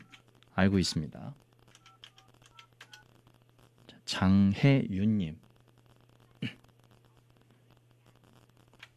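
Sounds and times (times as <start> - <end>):
two-pitch phone keypad beeps: 0.0 - 0.2, 1.7 - 3.0
speech: 0.6 - 1.5, 4.2 - 5.4.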